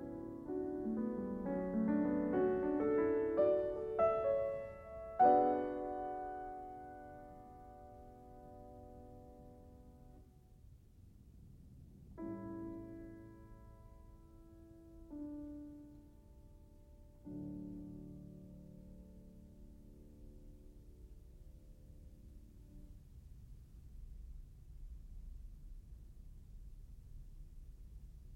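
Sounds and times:
piano prelude in D major: 0.0s - 10.4s, 12.2s - 23.0s.

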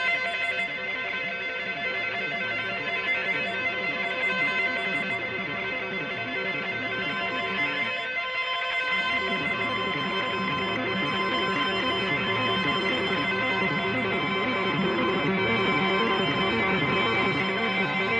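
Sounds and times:
musical loop and solo in a New York church: 0.1s - 18.1s.

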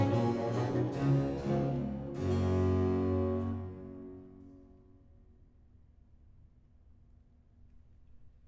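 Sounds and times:
aria: 0.0s - 4.8s.

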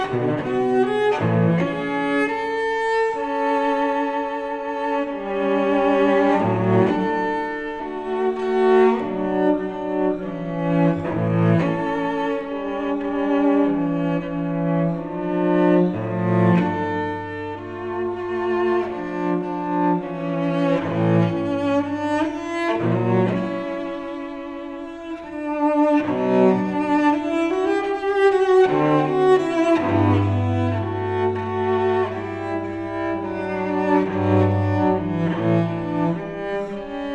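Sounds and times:
solo cello suite: 0.0s - 37.1s.

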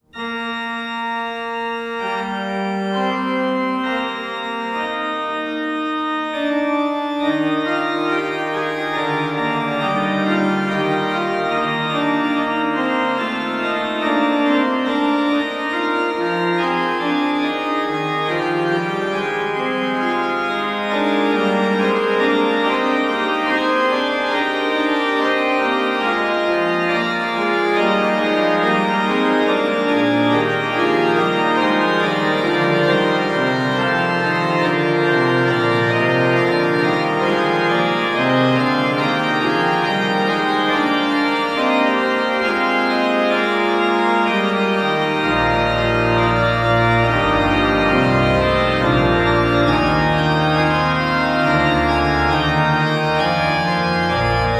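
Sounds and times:
organ fugue in E flat major: 0.0s - 54.5s.

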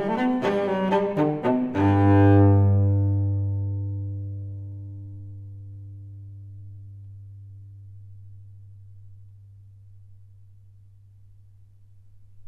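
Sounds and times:
solo cello piece in G: 0.0s - 9.9s.

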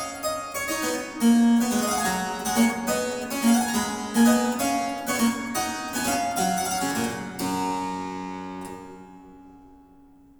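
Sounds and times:
Baroque harpsichord variation: 0.0s - 10.3s.

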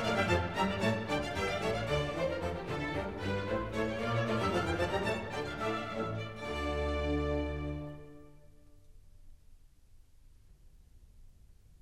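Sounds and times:
music: 0.0s - 9.2s.

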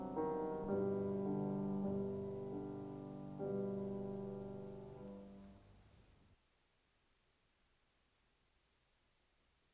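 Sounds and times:
piano sonata: 0.0s - 5.9s.

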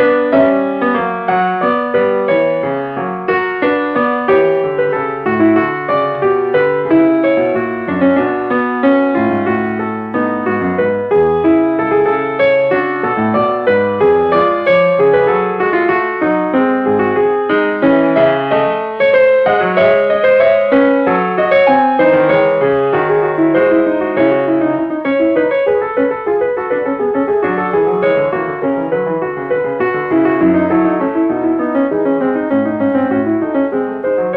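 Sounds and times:
harpsichord fugue: 0.0s - 34.3s.

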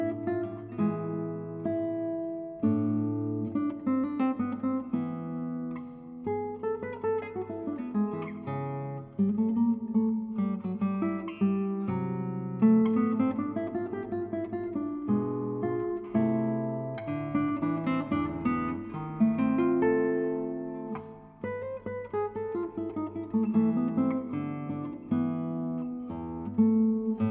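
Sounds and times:
guitar piece: 0.0s - 27.2s.

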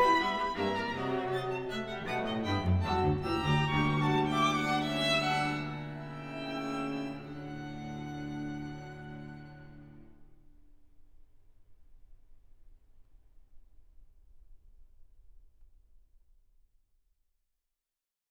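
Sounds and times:
string quintet playing fugue in D major: 0.0s - 10.1s.

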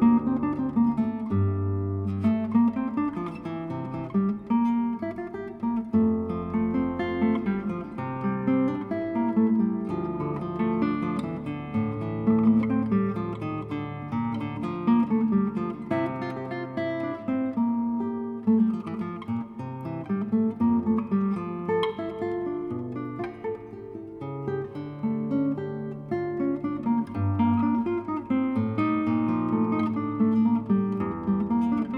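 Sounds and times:
classical violin piece arranged for guitar: 0.0s - 31.9s.

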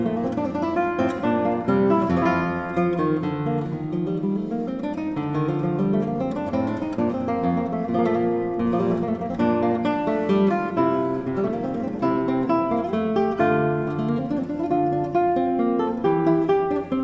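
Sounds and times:
classical guitar piece: 0.0s - 17.0s.

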